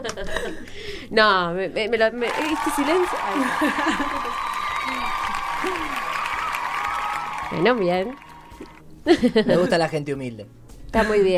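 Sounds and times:
laughter: 0.0s - 0.8s, 3.1s - 6.3s, 9.1s - 9.9s
speech: 0.0s - 4.4s, 7.5s - 11.3s
audience clapping: 2.2s - 8.8s.

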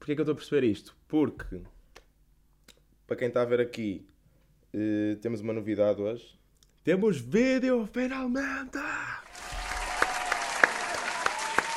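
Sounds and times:
speech: 0.0s - 1.8s, 3.1s - 4.1s, 4.7s - 9.1s
applause: 9.3s - 11.7s.

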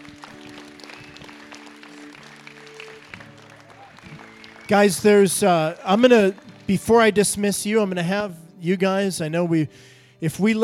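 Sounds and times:
audience hand clapping: 0.0s - 7.7s
speech: 4.7s - 10.6s.

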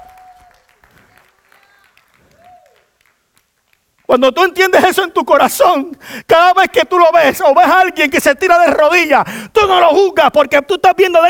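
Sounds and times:
audience applauding: 0.0s - 4.2s
speech: 4.1s - 11.2s.

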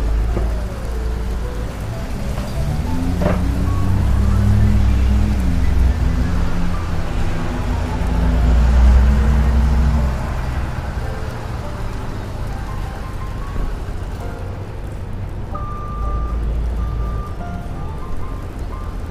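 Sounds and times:
heavy low traffic rumble in New York: 0.0s - 19.1s
rain and street noise in New York: 0.0s - 19.1s
vehicle engine droning: 0.0s - 19.1s.

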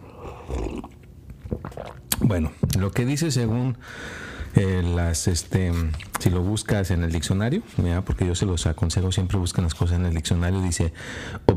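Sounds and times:
person sipping coffee: 0.0s - 2.2s
speech: 2.3s - 11.5s.

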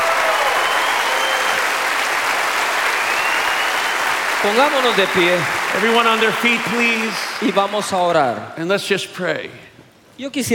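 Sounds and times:
audience applause: 0.0s - 8.3s
speech: 4.4s - 10.5s.

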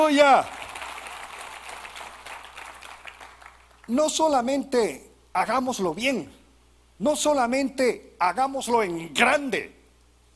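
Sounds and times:
speech: 0.0s - 0.6s, 3.9s - 6.4s, 7.0s - 9.8s
crowd applause: 0.4s - 3.9s.

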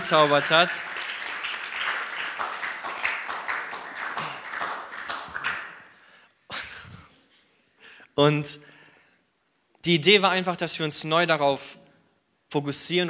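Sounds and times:
speech: 0.0s - 1.1s, 8.2s - 8.7s, 9.8s - 11.8s, 12.5s - 13.0s
audience applause: 0.0s - 6.0s.

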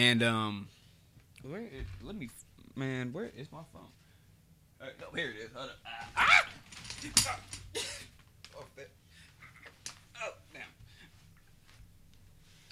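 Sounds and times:
speech: 0.0s - 0.8s, 1.4s - 4.0s, 4.8s - 8.0s
chair seat creaking rattling and knocking: 6.0s - 8.7s.

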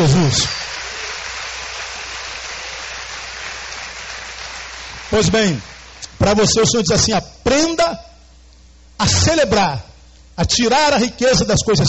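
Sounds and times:
speech: 0.0s - 0.6s, 5.1s - 8.1s, 9.0s - 11.8s
audience applause: 0.0s - 6.0s.

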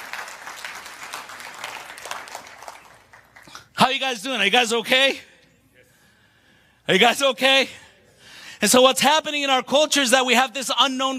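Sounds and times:
audience applause: 0.0s - 3.6s
speech: 3.8s - 5.3s, 6.9s - 7.8s, 8.6s - 11.1s.

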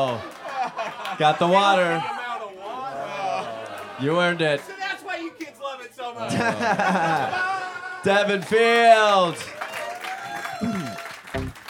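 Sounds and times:
speech: 0.0s - 0.4s, 1.2s - 2.2s, 4.0s - 4.8s, 6.0s - 9.6s
audience applause: 0.0s - 1.3s, 6.9s - 11.6s
laughter: 0.0s - 2.0s, 6.2s - 8.3s.

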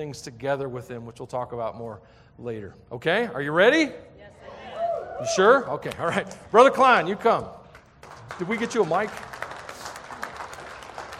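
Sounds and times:
speech: 0.0s - 4.4s, 5.2s - 9.4s
audience clapping: 5.9s - 11.1s.

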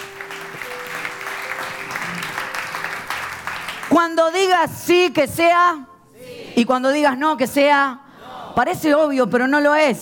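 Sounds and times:
audience applause: 0.0s - 4.0s
speech: 4.0s - 5.9s, 6.6s - 8.0s, 8.6s - 10.0s.

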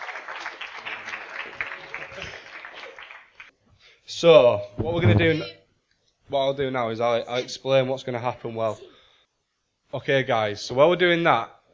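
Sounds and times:
audience applause: 0.0s - 3.5s
speech: 4.1s - 5.6s, 6.3s - 8.9s, 9.9s - 11.6s.

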